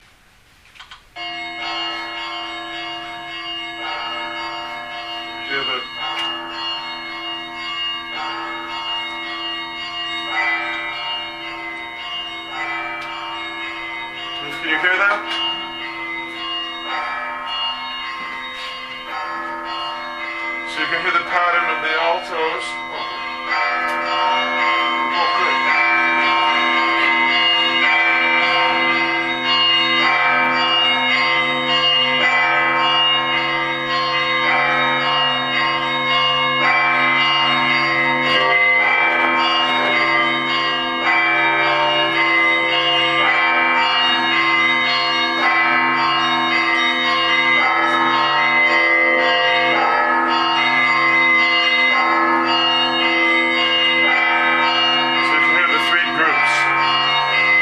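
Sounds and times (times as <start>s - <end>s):
bell tolling: 1.2s - 57.5s.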